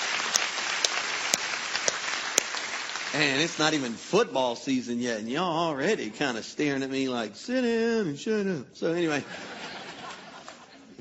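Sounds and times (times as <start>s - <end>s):
audience applause during a church service: 0.0s - 4.3s, 9.3s - 10.8s
speech: 3.1s - 9.5s
laughter: 9.1s - 10.9s.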